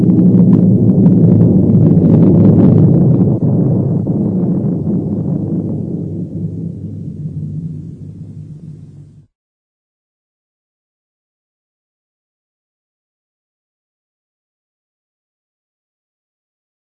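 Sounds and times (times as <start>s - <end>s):
avalanche rumble: 0.0s - 9.3s.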